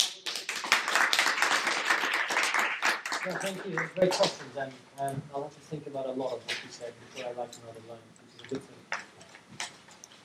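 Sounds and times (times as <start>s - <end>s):
audience clapping to thank a speaker after a talk: 0.0s - 4.6s
speech: 3.2s - 8.8s.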